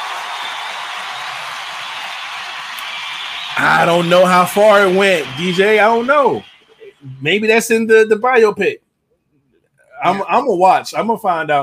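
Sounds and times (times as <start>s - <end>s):
audience round of applause: 0.0s - 7.6s
speech: 3.6s - 8.8s, 10.0s - 11.6s.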